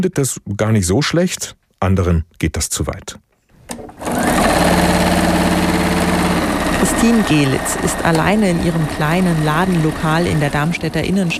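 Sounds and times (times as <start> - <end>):
speech: 0.0 - 3.3, 7.0 - 11.3
sewing machine rattling: 3.7 - 11.3.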